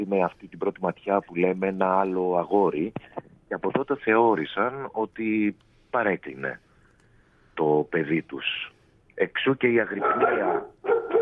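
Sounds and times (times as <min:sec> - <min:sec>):
speech: 0:00.0 - 0:06.7, 0:07.6 - 0:10.7
dog yipping and whining: 0:10.0 - 0:11.2.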